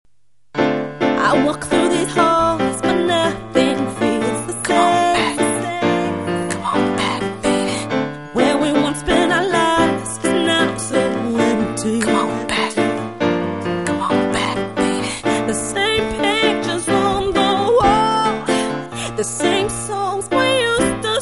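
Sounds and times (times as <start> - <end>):
piano: 0.6 - 21.2.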